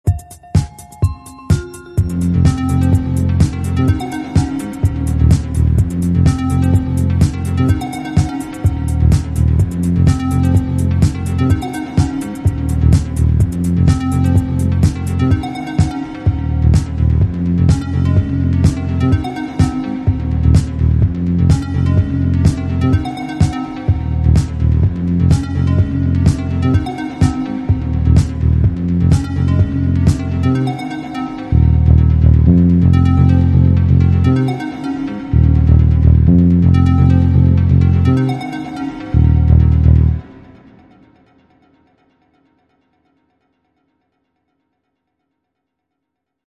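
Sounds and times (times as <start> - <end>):
arpeggio: 0.1 - 40.4.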